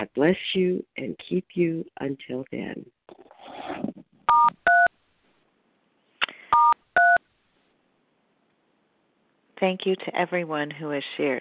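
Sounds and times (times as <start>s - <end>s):
speech: 0.0s - 4.0s, 9.6s - 11.4s
telephone keypad tones: 6.6s - 7.2s.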